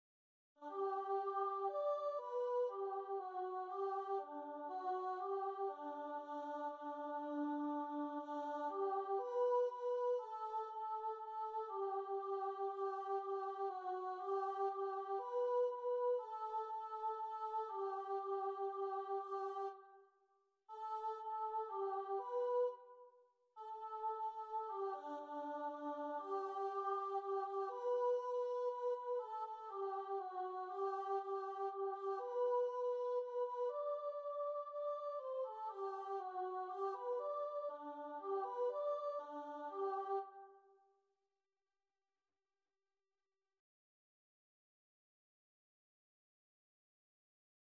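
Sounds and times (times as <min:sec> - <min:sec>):
alto choir singing: 0:00.6 - 0:19.8, 0:20.7 - 0:22.8, 0:23.7 - 0:40.4.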